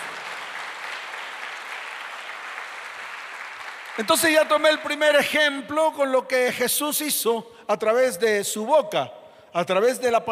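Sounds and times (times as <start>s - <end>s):
applause: 0.0s - 5.4s
speech: 4.0s - 10.3s.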